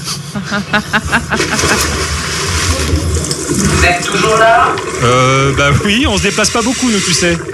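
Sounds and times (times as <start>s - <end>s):
laughter: 0.3s - 2.2s
speech: 0.4s - 2.0s, 3.5s - 7.5s
water churning as a weighted diver plunges in: 1.0s - 7.5s.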